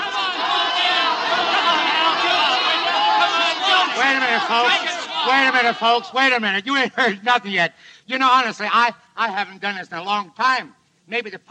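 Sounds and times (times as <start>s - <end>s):
nightclub crowd yelling in Hollywood: 0.0s - 6.4s
speech: 4.1s - 11.4s.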